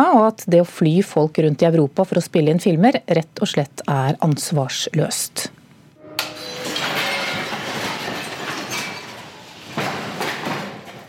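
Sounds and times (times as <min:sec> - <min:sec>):
speech: 0:00.0 - 0:05.6
hotel furniture crashing in film earthquake: 0:06.5 - 0:11.0.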